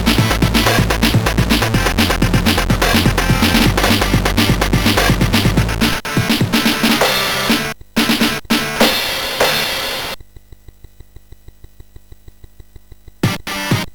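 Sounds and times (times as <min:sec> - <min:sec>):
chiptune music from a MOS6581R4 SID chip: 0:00.0 - 0:09.8.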